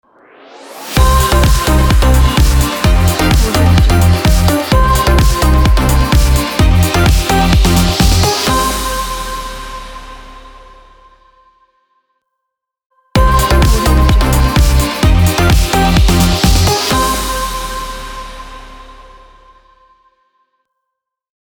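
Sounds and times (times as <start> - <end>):
dance opener music: 0.9 - 11.1, 13.2 - 19.6.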